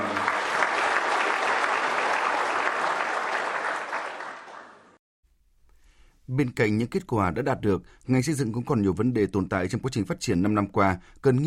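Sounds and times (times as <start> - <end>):
audience round of applause: 0.0 - 5.0
speech: 6.4 - 11.4.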